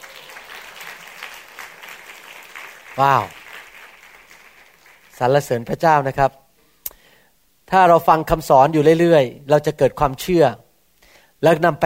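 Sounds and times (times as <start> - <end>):
audience applauding: 0.0 - 5.6
speech: 3.0 - 3.4, 5.2 - 6.4, 7.7 - 10.6, 11.4 - 11.8.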